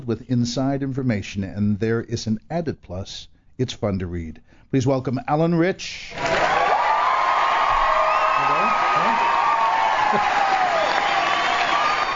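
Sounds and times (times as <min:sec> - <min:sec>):
speech: 0:00.0 - 0:06.4, 0:10.1 - 0:10.4
audience applause and cheering: 0:06.1 - 0:12.1.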